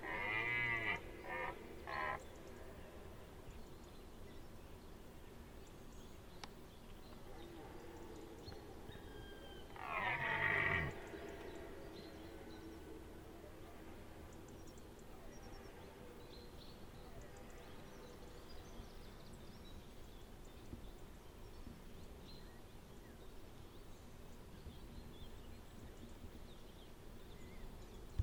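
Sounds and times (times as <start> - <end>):
deer calling with rich moaning calls: 0.0 - 2.3, 9.1 - 11.6.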